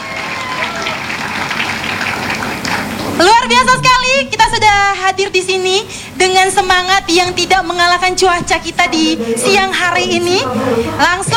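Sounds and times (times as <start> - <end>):
applause: 0.0 - 3.2
speech: 3.2 - 11.3.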